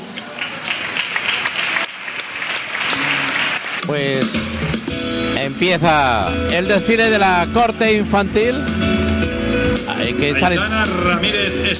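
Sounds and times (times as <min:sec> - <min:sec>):
crowd applauding loudly: 0:00.0 - 0:11.7
speech: 0:03.9 - 0:08.9, 0:09.8 - 0:11.7.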